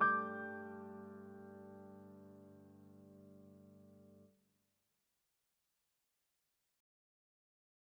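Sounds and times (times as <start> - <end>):
grand piano: 0.0 - 4.3.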